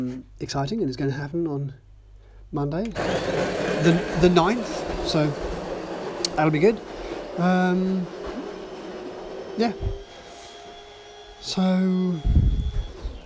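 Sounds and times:
speech: 0:00.0 - 0:01.8, 0:02.5 - 0:05.5, 0:06.4 - 0:08.2, 0:09.6 - 0:10.0, 0:11.4 - 0:12.4
coffee grinder motor revving up through beans: 0:03.0 - 0:13.2
rattling gritty clatter: 0:03.2 - 0:09.8.

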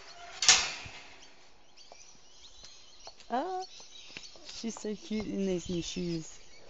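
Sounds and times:
gate opening with a metallic click and rattle: 0:00.4 - 0:01.1
speech: 0:03.3 - 0:03.6, 0:04.6 - 0:06.4.

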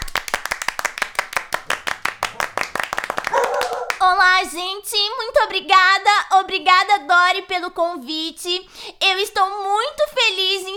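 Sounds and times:
audience clapping hands: 0:00.0 - 0:04.1
speech: 0:04.4 - 0:10.7.

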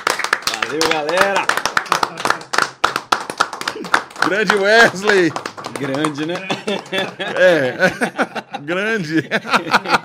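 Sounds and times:
audience applause: 0:00.0 - 0:07.8
speech: 0:00.7 - 0:02.5, 0:03.8 - 0:10.0
laughter: 0:05.9 - 0:10.0.

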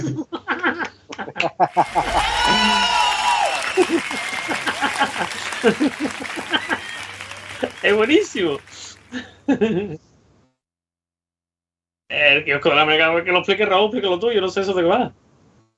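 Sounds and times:
laughter: 0:00.0 - 0:10.0
speech: 0:01.6 - 0:02.8, 0:07.9 - 0:08.7, 0:09.5 - 0:10.1, 0:12.1 - 0:15.2
applause: 0:01.7 - 0:09.2.

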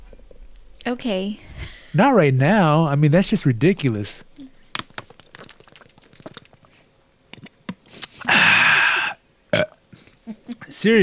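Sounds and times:
speech: 0:00.9 - 0:04.3, 0:10.8 - 0:11.0
burp into the microphone: 0:08.3 - 0:09.8.

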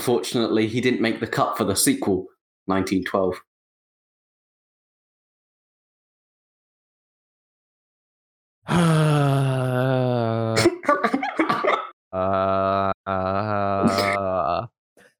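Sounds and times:
speech: 0:00.0 - 0:03.5
choppy breathy sounds: 0:08.7 - 0:10.6, 0:12.2 - 0:15.1
person groaning: 0:08.7 - 0:10.9, 0:12.2 - 0:14.7.

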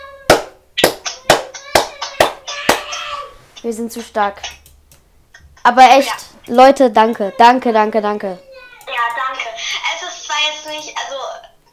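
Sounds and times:
people clapping hands: 0:00.3 - 0:02.9
speech: 0:03.6 - 0:04.6, 0:05.6 - 0:08.5.

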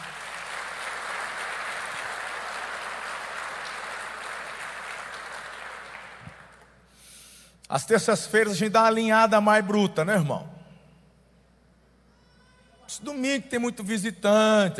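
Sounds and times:
audience applause: 0:00.0 - 0:06.7
speech: 0:07.7 - 0:10.5, 0:13.2 - 0:14.7.

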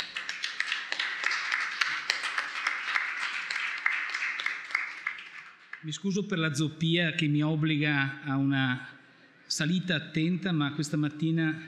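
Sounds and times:
audience applause: 0:00.0 - 0:05.8
speech: 0:05.8 - 0:11.6.

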